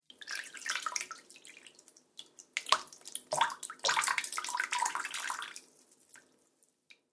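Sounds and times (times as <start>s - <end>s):
water trickling and plopping: 0.0s - 6.4s.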